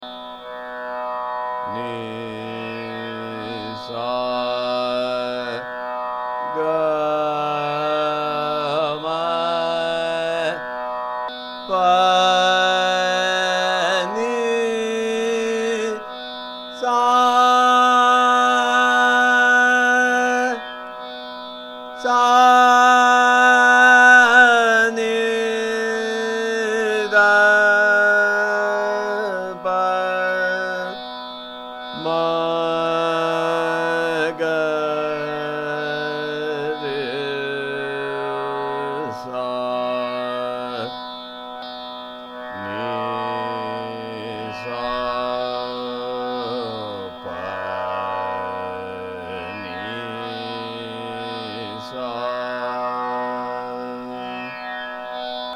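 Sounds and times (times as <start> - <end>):
Bheempalasi raga ascending and descending scale: 0.0 - 55.5.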